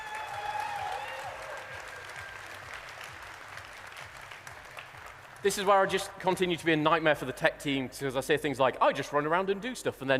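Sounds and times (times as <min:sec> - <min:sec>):
audience applause: 0:00.0 - 0:06.0
speech: 0:05.4 - 0:10.1.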